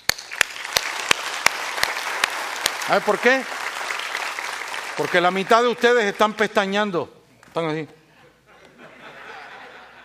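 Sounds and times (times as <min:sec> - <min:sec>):
church congregation clapping at a Spanish-language service: 0:00.0 - 0:06.7
speech: 0:02.9 - 0:03.6, 0:05.0 - 0:08.0
laughter: 0:08.2 - 0:10.0.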